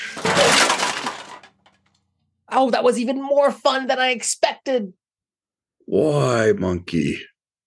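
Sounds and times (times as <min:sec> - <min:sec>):
trash being dumped out: 0:00.0 - 0:01.7
speech: 0:02.6 - 0:05.0, 0:05.9 - 0:07.3.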